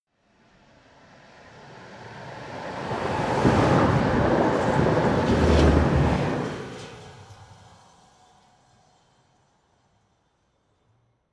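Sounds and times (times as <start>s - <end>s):
electric train driving by: 1.1s - 8.1s.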